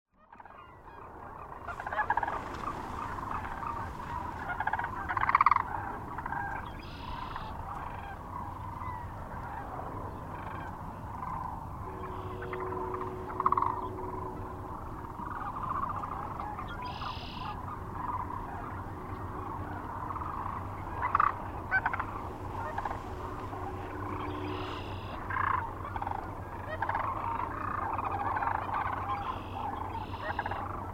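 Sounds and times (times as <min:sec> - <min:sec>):
Sandhill Crane flock calling: 0:00.2 - 0:30.9.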